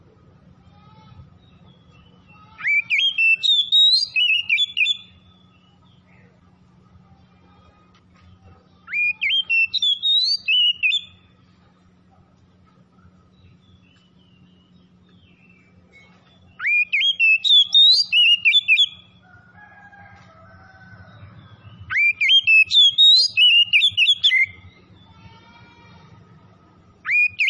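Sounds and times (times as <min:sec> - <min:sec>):
faint low hum: 0:00.0 - 0:27.4
Oriental magpie-robin whistled song: 0:01.8 - 0:05.8, 0:08.9 - 0:11.2, 0:13.5 - 0:19.1, 0:21.5 - 0:24.9, 0:27.0 - 0:27.4.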